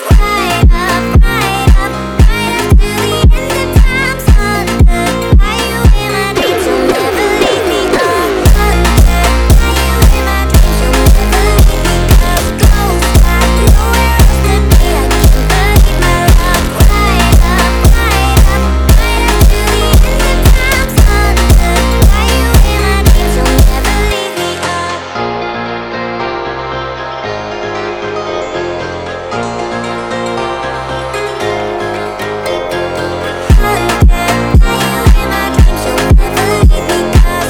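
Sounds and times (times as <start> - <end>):
jumpstyle funk music: 0.1 - 24.2, 33.5 - 37.4.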